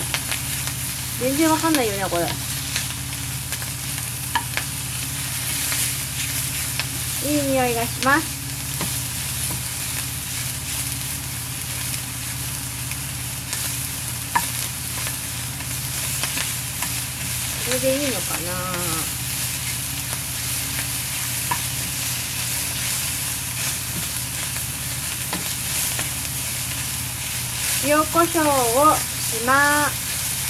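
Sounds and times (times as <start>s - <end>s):
food stir-frying in a pan: 0.0s - 30.4s
speech: 1.2s - 2.5s, 7.2s - 8.4s, 17.7s - 19.2s, 27.9s - 30.0s.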